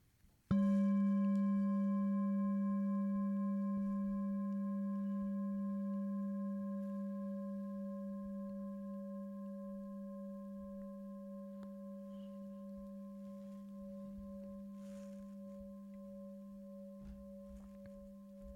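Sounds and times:
meditation bell ringing: 0.5s - 18.5s.

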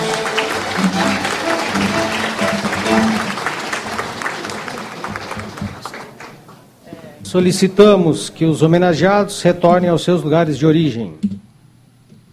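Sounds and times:
audience applause at medal ceremony: 0.0s - 6.6s
speech: 7.3s - 11.4s.

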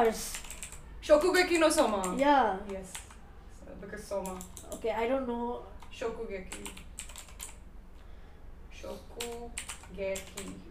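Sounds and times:
speech: 0.0s - 0.4s, 1.1s - 3.0s, 3.8s - 6.9s, 8.8s - 10.6s
faint typing on a computer keyboard: 0.0s - 0.8s, 1.4s - 3.2s, 4.2s - 4.8s, 6.5s - 7.6s, 9.2s - 10.6s.

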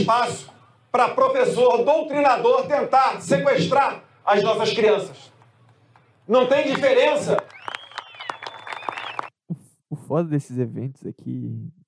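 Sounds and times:
speech: 0.0s - 5.3s, 6.3s - 7.5s, 10.1s - 11.8s
scattered clapping from a small group at an event: 5.3s - 9.3s.

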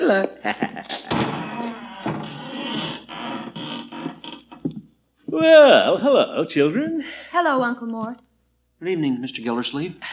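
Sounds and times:
speech: 0.1s - 1.4s, 5.4s - 8.2s, 8.8s - 10.1s
rattling noise: 0.9s - 4.8s
door opening: 0.9s - 4.9s.

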